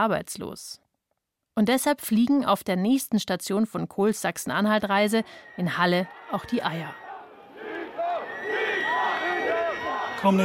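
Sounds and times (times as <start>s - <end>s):
speech: 0.0s - 0.8s, 1.6s - 7.0s, 10.2s - 10.4s
protesting crowd whistling: 4.8s - 10.4s
young people chanting liar: 5.3s - 10.4s.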